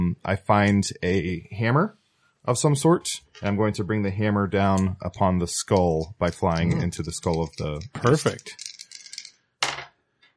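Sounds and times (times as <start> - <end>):
speech: 0.1 - 8.7
dice rolling: 7.0 - 10.3.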